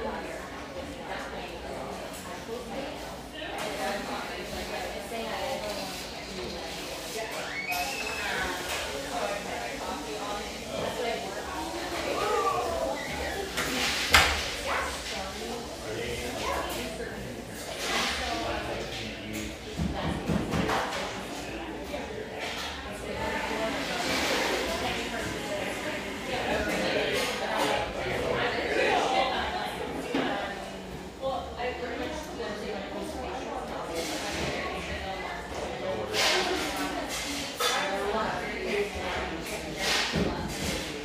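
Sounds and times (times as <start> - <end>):
murmur of voices in a café near the beach north of San Diego: 0.0 - 41.0.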